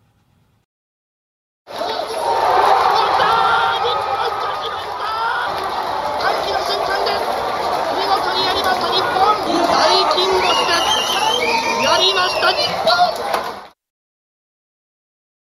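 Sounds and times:
large crowd roaring and cheering at a football viewing event: 1.7s - 13.8s.

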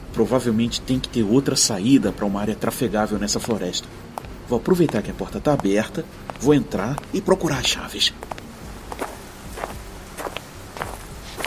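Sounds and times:
speech: 0.2s - 8.3s
careful footsteps walking toward an entrance: 3.1s - 11.4s.

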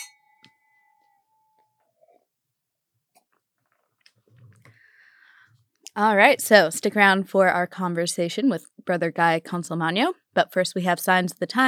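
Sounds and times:
wine glasses clinking in a toast: 0.0s - 1.6s
speech: 6.0s - 11.6s.

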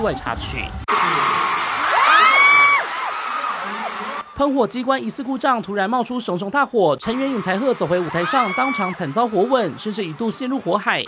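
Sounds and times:
speech: 0.0s - 1.4s, 4.4s - 11.0s
concert fans screaming: 0.0s - 4.7s, 7.1s - 11.0s
crowd roar: 0.0s - 4.7s, 7.1s - 11.0s.

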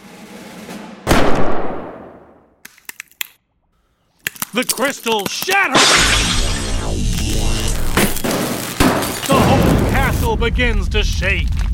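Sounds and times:
gunshot: 1.0s - 2.4s, 5.7s - 6.7s, 8.0s - 10.1s
sharp clicks and ticks: 4.2s - 5.7s
speech: 4.5s - 6.6s, 10.2s - 11.6s.

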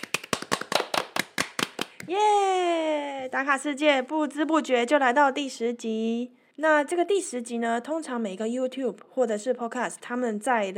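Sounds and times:
hands clapping: 0.0s - 2.2s
speech: 2.1s - 2.4s, 3.3s - 10.7s.

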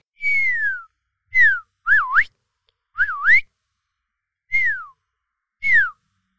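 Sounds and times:
person whistling an imitation of an African grey parrot call: 0.1s - 2.3s, 3.0s - 3.5s, 4.5s - 5.0s, 5.6s - 6.0s.

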